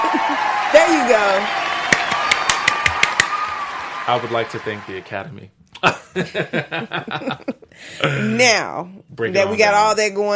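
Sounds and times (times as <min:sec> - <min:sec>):
laughter: 0:00.0 - 0:00.6, 0:05.8 - 0:08.3
sharp claps: 0:00.0 - 0:04.6
speech: 0:01.1 - 0:01.6, 0:04.1 - 0:10.3.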